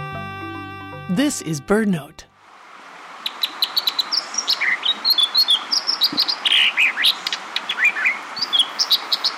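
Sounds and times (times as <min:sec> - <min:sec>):
speech: 0:01.2 - 0:02.3
rapidly rushing western stream: 0:02.4 - 0:09.3
American dipper song: 0:03.2 - 0:09.3.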